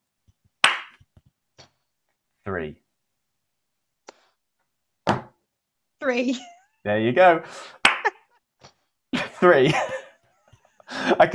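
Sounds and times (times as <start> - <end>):
hand claps: 0.6 - 1.2, 7.8 - 8.1
speech: 2.5 - 2.8, 6.1 - 7.8, 9.4 - 10.0, 11.0 - 11.3.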